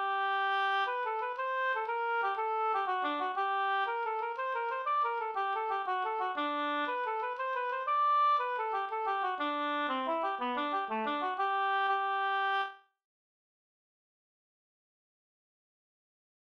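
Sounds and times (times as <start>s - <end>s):
Swedish polska folk dance tune: 0.0s - 12.7s.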